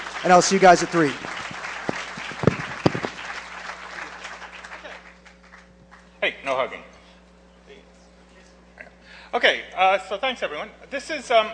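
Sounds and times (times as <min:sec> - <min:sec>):
audience applause: 0:00.0 - 0:05.7
speech: 0:00.2 - 0:01.3, 0:10.1 - 0:11.5.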